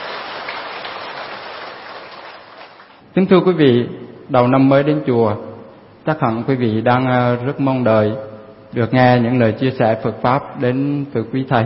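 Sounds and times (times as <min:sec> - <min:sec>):
long loud applause: 0:00.0 - 0:03.0
speech: 0:03.2 - 0:11.6.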